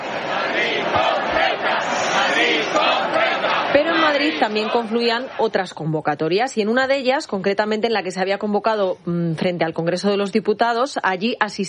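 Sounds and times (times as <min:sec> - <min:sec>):
protest crowd chanting: 0:00.0 - 0:05.8
speech: 0:04.1 - 0:11.6.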